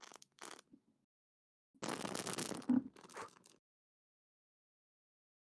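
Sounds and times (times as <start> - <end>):
paper sheet burning in candle flame: 1.8 - 3.6.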